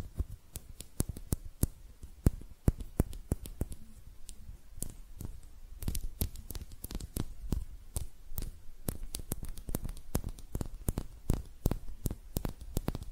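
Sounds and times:
hand clicks, snaps and taps: 0.0s - 13.1s.

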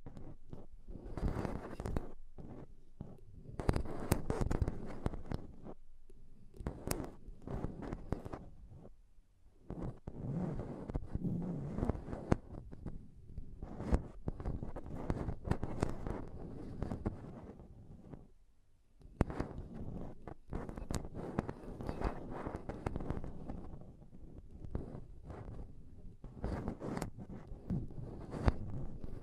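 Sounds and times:
microphone scratching: 0.0s - 5.8s, 6.6s - 8.9s, 9.6s - 18.3s, 19.1s - 29.2s.

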